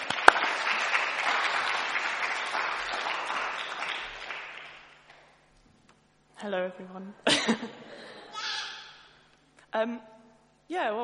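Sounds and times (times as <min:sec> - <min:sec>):
crowd clapping: 0:00.0 - 0:05.3
speech: 0:06.4 - 0:08.2, 0:09.7 - 0:11.0.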